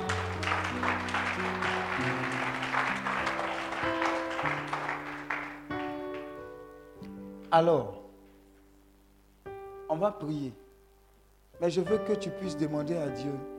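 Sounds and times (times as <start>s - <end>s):
church congregation applauding to acclaim God: 0.0s - 6.7s
speech: 7.5s - 8.0s, 9.9s - 10.6s, 11.6s - 13.5s.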